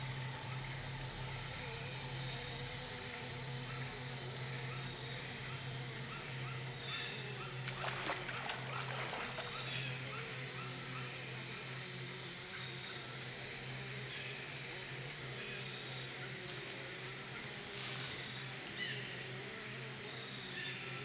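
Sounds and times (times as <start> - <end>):
swamp ambience: 0.0 - 21.0.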